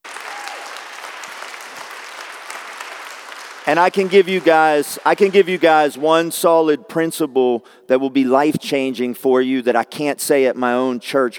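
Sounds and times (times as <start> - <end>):
scattered cheers: 0.0 - 1.9
sustained applause from a large crowd: 0.0 - 5.9
speech: 3.7 - 11.3.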